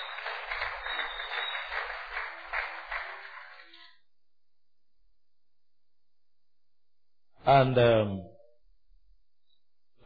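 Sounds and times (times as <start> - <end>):
audience applause: 0.0 - 3.9
speech: 7.5 - 8.3.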